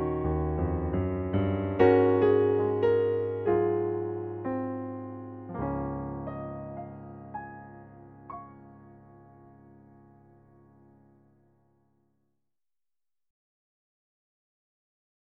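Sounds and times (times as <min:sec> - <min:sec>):
piano playing: 0:00.0 - 0:11.6.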